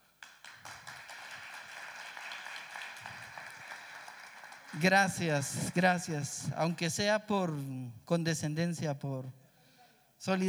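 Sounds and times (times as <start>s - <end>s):
crowd clapping: 0.0s - 6.4s
speech: 4.7s - 9.4s, 10.2s - 10.4s.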